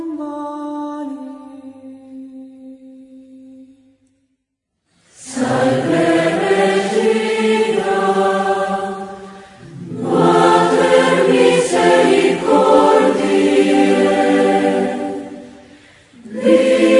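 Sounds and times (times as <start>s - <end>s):
choir of 450 voices singing: 5.2s - 16.9s.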